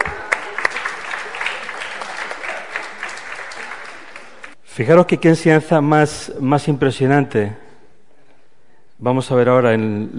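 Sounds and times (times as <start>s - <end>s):
audience clapping: 0.0s - 4.6s
speech: 4.8s - 7.6s, 9.0s - 10.1s.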